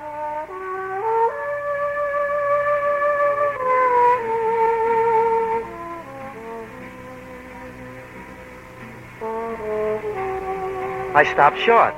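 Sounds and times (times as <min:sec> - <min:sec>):
trombone playing: 0:00.0 - 0:11.9
speech: 0:11.2 - 0:11.9.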